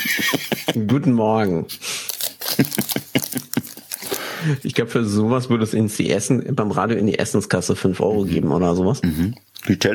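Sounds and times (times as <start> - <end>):
laughter: 0.0 - 1.1, 2.4 - 4.2
speech: 0.0 - 1.8, 2.6 - 3.0, 4.4 - 9.9
crunchy nibbling of a protein bar: 2.1 - 4.4
protein bar wrapper crinkling and rustling: 2.1 - 4.4.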